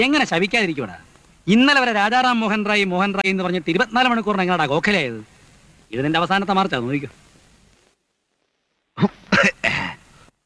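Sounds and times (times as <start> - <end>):
speech: 0.0 - 5.3, 5.9 - 7.2, 9.0 - 9.6
person coughing: 9.0 - 10.0.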